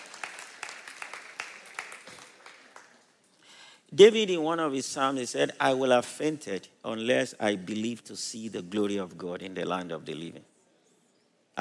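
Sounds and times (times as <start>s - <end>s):
audience clapping: 0.0s - 3.4s
speech: 3.9s - 10.5s.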